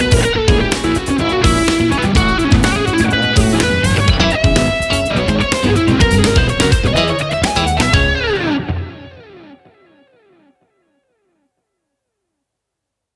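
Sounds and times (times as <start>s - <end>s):
funk music: 0.0s - 9.5s.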